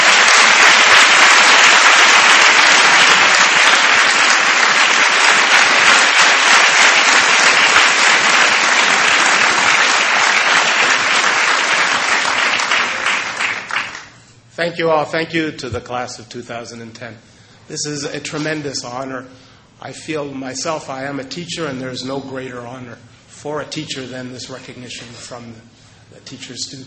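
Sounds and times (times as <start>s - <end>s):
sustained loud audience applause: 0.0s - 14.2s
speech: 14.6s - 26.8s.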